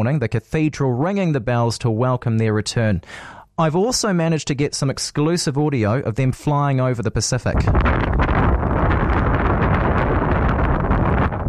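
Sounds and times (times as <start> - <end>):
speech: 0.0 - 8.3
strong wind blowing across microphone: 7.5 - 11.4.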